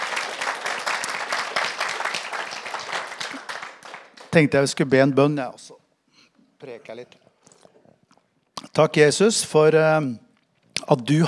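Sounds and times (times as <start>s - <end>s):
audience applause: 0.0s - 4.6s
speech: 4.4s - 5.8s, 6.6s - 7.2s, 8.8s - 10.2s, 10.9s - 11.2s.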